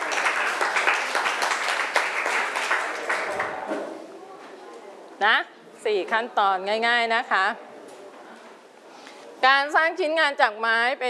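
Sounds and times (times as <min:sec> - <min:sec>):
students applauding in a classroom: 0:00.0 - 0:03.7
speech: 0:05.2 - 0:07.6, 0:09.4 - 0:11.0.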